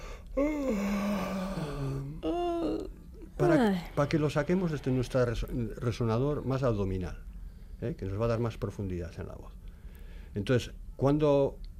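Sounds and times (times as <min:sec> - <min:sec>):
fake yawn made as a vocal warm-up: 0:00.0 - 0:04.0
speech: 0:00.4 - 0:00.9, 0:03.6 - 0:09.6, 0:10.3 - 0:11.6.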